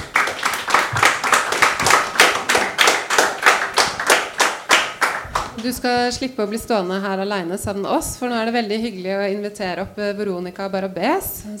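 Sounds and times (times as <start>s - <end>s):
audience applause: 0.0s - 5.6s
speech: 5.6s - 11.5s.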